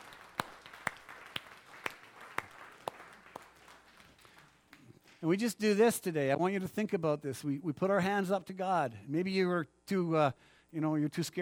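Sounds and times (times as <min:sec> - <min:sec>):
audience clapping: 0:00.0 - 0:05.2
speech: 0:05.2 - 0:11.4.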